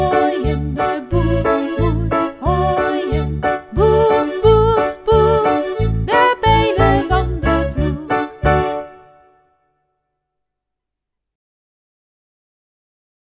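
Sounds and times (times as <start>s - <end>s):
person singing: 0.0s - 9.0s.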